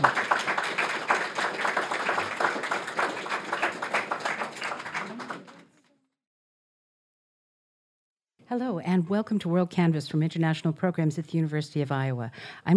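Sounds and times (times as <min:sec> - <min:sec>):
audience applause thanking guests at a live event: 0:00.0 - 0:05.9
speech: 0:08.5 - 0:12.7.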